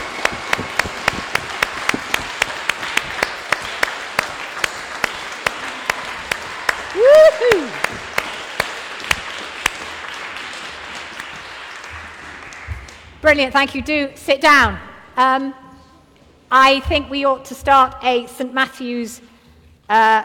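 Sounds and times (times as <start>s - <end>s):
audience applause: 0.0s - 13.0s
rising whoop: 6.0s - 8.0s
speech: 13.3s - 15.6s, 16.5s - 19.3s, 19.9s - 20.2s.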